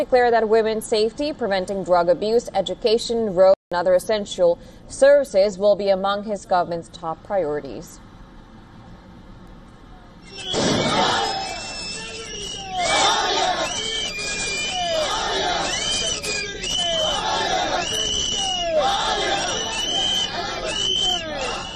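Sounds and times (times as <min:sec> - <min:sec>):
speech: 0:00.0 - 0:08.0
large crowd cheering in celebration: 0:10.2 - 0:21.7
sharp bangs: 0:10.3 - 0:11.4.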